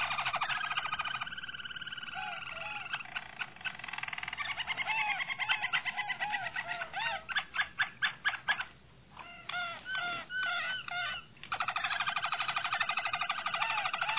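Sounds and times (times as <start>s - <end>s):
Harz Roller canary singing: 0.0s - 14.1s.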